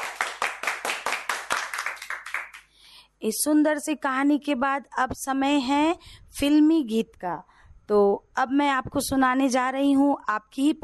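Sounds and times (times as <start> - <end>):
children clapping loudly: 0.0 - 2.7
speech: 3.2 - 10.8.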